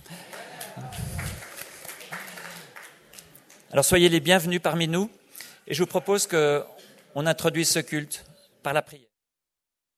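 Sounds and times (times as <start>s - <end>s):
audience applause: 0.0s - 3.1s
speech: 3.7s - 9.1s.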